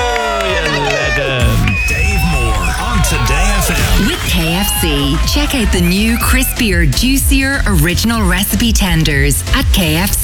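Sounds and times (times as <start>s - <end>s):
crowd cheering and applauding: 0.0s - 7.8s
speech: 4.8s - 10.2s.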